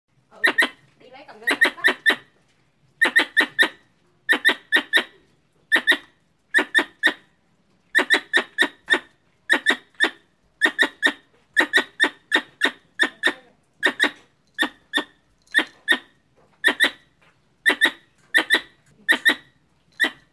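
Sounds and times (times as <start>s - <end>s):
squirrel chirping: 0.3s - 2.3s, 3.0s - 7.3s, 7.9s - 20.3s.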